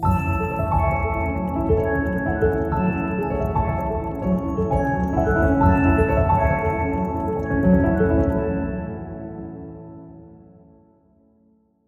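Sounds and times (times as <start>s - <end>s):
finish line music: 0.0s - 8.4s.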